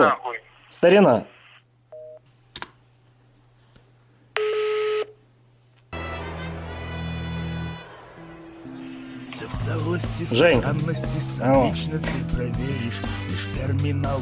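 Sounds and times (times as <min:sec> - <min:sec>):
speech: 0:00.0 - 0:01.3, 0:09.7 - 0:14.2
telephone busy tone after dropped call: 0:04.4 - 0:05.2.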